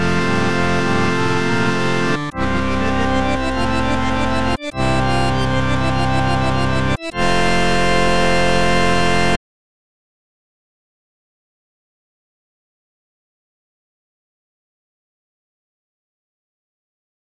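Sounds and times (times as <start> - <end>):
harmonium: 0.0 - 9.4.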